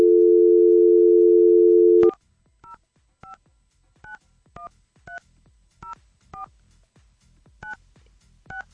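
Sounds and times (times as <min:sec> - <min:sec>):
telephone dial tone: 0:00.0 - 0:02.1.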